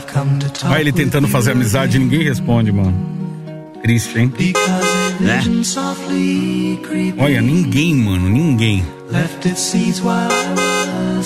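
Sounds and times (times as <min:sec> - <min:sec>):
speech: 0:00.1 - 0:03.2, 0:03.8 - 0:11.2
car horn with a dying battery honking weakly: 0:04.5 - 0:05.5, 0:10.3 - 0:11.1.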